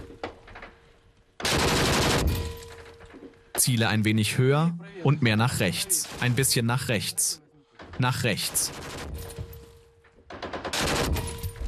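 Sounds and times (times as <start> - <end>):
volley of gunfire during aimed shooting practice: 1.4 - 2.5, 10.4 - 11.4
speech: 3.6 - 7.4, 8.0 - 9.1.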